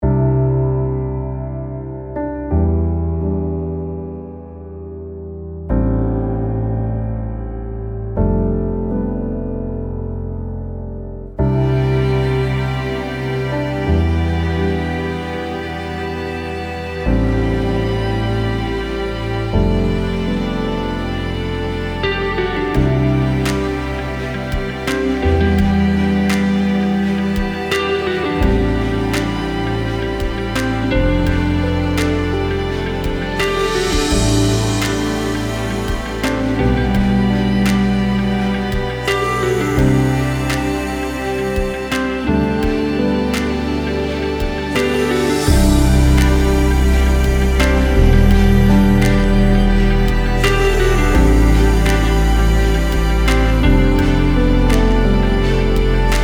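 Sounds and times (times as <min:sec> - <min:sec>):
neoclassical hybrid piano music: 0:00.0 - 0:56.2.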